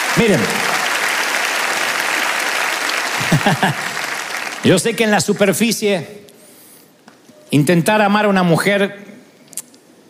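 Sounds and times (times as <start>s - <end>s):
audience applause: 0.0s - 5.1s
speech: 0.2s - 0.7s, 3.2s - 3.9s, 4.6s - 6.3s, 7.5s - 9.1s
laughter: 3.1s - 4.1s.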